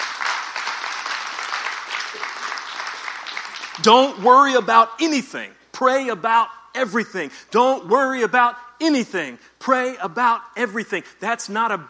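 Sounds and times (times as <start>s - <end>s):
audience clapping: 0.0s - 4.3s
speech: 3.8s - 11.8s.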